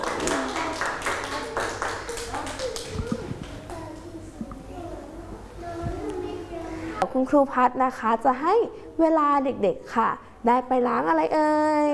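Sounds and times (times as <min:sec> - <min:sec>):
group of children clapping hands: 0:00.0 - 0:04.1
young voices chattering and squealing: 0:02.6 - 0:07.0
speech: 0:07.1 - 0:11.9.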